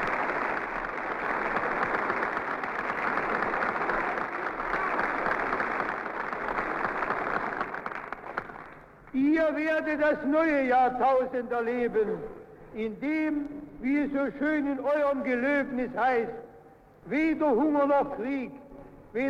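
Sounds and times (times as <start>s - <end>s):
large audience applause after a political speech: 0.0s - 9.0s
speech: 9.5s - 16.4s, 17.0s - 19.2s.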